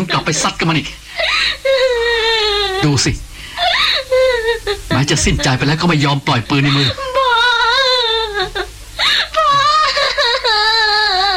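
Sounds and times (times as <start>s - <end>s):
speech: 0.1s - 2.0s, 2.8s - 3.3s, 5.0s - 7.1s
person crying and wailing in grief over someone killed by a gunshot: 1.1s - 3.0s, 3.6s - 11.3s.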